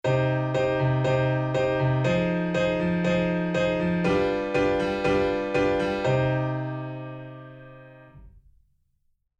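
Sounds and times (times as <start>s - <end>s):
chord progression in C minor: 0.0s - 8.2s.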